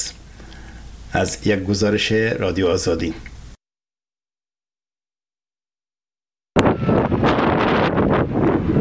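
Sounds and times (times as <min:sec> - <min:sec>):
speech: 0:01.1 - 0:03.3
strong wind blowing around tents in Herat: 0:06.6 - 0:08.8.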